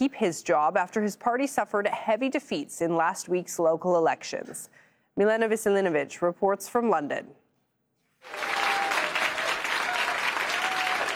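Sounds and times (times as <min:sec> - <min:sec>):
speech: 0:00.0 - 0:07.4, 0:08.2 - 0:08.6
applause: 0:08.2 - 0:11.1.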